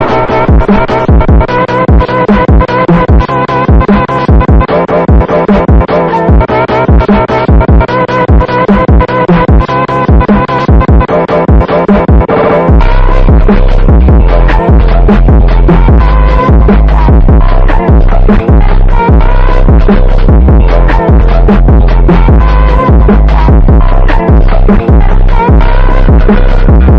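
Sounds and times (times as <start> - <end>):
phonk music: 0.0 - 26.9.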